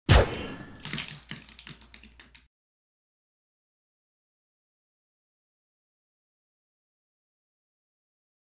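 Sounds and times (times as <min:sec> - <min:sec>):
blood pouring: 0:00.2 - 0:02.5.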